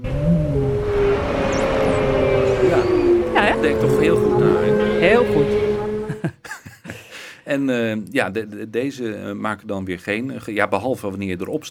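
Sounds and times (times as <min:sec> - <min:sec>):
voice imitating a whale call: 0:00.0 - 0:06.2
laughter: 0:06.0 - 0:07.3
speech: 0:07.6 - 0:11.6.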